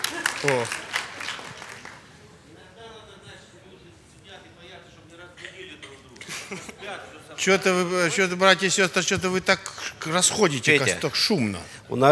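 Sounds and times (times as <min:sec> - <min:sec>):
laughter: 0:00.0 - 0:01.1, 0:05.4 - 0:07.2
audience clapping hands: 0:00.0 - 0:02.2
speech: 0:00.4 - 0:00.9, 0:07.4 - 0:12.1.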